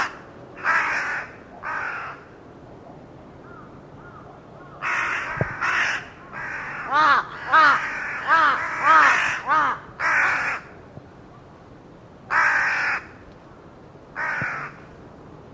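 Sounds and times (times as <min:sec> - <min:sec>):
bird giving rough nasal caws: 0:00.0 - 0:02.4, 0:03.4 - 0:10.8, 0:12.3 - 0:14.9.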